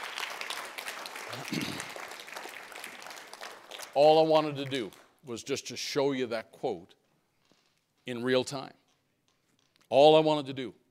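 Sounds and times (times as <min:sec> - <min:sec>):
audience applause: 0:00.0 - 0:04.8
speech: 0:04.0 - 0:07.0, 0:08.0 - 0:08.8, 0:09.9 - 0:10.8.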